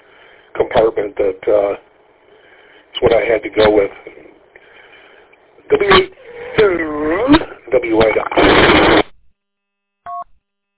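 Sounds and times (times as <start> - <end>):
static-like noise: 0.0 - 9.6
speech: 0.7 - 1.9, 3.0 - 4.3, 5.7 - 9.0
two-toned telephone dialing beep: 10.1 - 10.3.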